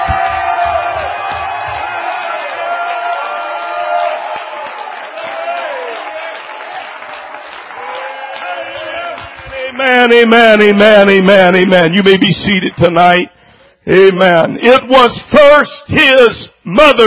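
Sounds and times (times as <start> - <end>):
audience shouting: 0.0 - 9.8
audience clapping: 0.0 - 13.2
speech: 10.0 - 17.0.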